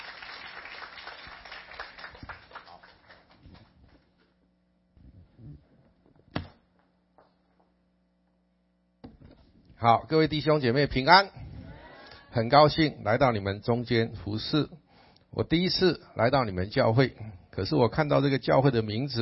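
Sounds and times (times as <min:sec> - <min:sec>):
audience clapping to welcome speaker: 0:00.0 - 0:04.0
speech: 0:09.8 - 0:11.4, 0:12.4 - 0:14.8, 0:15.4 - 0:19.2.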